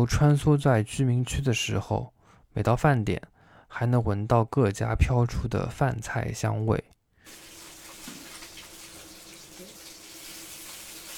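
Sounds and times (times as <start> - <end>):
speech: 0.0 - 7.4
hairtail fish sizzling in a frying pan in a home kitchen: 7.3 - 11.1.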